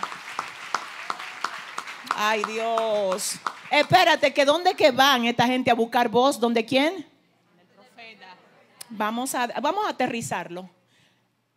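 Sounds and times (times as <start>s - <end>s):
rhythmic audience clapping: 0.0s - 5.0s
speech: 2.2s - 7.1s, 8.9s - 10.8s.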